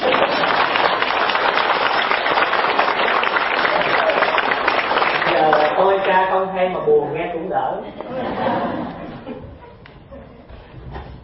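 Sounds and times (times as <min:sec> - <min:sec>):
laughter: 0:00.0 - 0:00.7, 0:07.8 - 0:11.2
audience clapping at a Buddhist dharma talk in Canada: 0:00.0 - 0:06.3
speech: 0:06.3 - 0:09.4.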